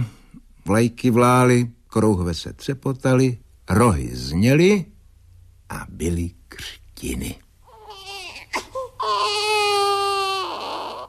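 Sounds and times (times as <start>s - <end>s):
speech: 0.7s - 4.9s, 5.7s - 7.4s
baby crying: 7.7s - 11.0s.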